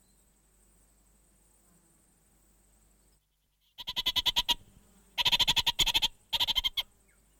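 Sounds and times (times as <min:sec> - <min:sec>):
orange-fronted parakeet chattering: 0:03.8 - 0:04.6, 0:05.2 - 0:06.8.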